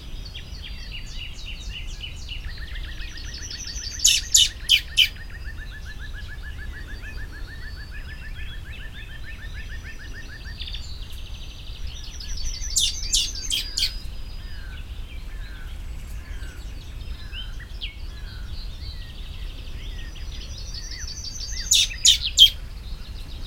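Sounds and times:
other birds whistling and twittering: 0.0 - 23.4
common blackbird harsh calls: 2.6 - 11.1, 12.1 - 18.9, 20.0 - 23.4
another bird trilling: 3.6 - 5.3, 12.4 - 14.1, 20.8 - 22.6.

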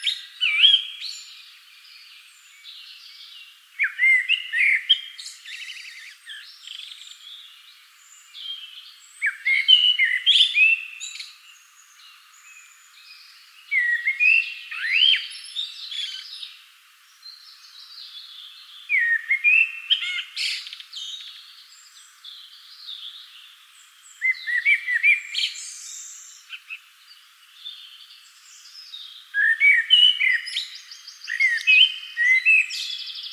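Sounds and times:
common blackbird singing: 0.0 - 33.3.

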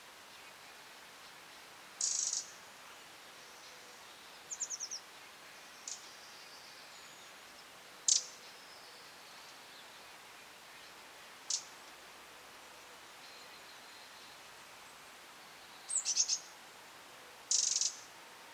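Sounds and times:
background hiss: 0.0 - 18.5
Eurasian wren calls: 2.0 - 2.5, 4.5 - 5.0, 8.1 - 8.3, 11.5 - 11.7, 15.8 - 16.5, 17.5 - 18.1.

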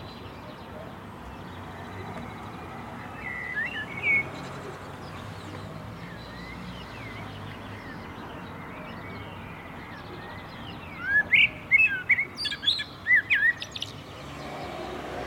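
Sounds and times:
common blackbird Turdus merula singing: 0.0 - 15.1.

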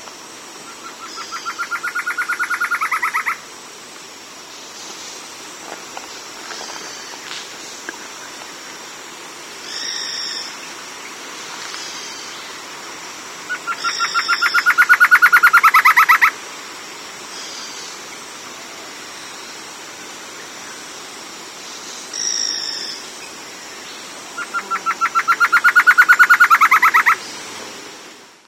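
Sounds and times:
background hiss: 0.0 - 28.4
bird trill: 0.8 - 3.4, 13.5 - 16.3, 24.4 - 27.2.

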